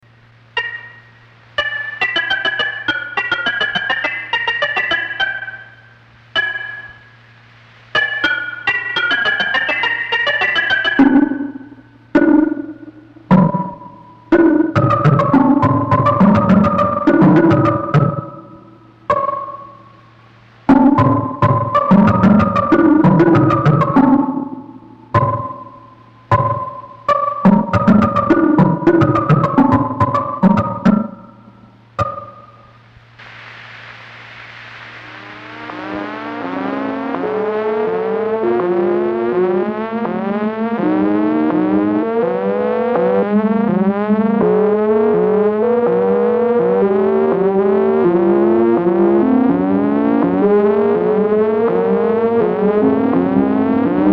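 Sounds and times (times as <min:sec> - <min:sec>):
Buchla modular synthesizer music: 0:00.1 - 0:33.0, 0:34.2 - 0:54.1.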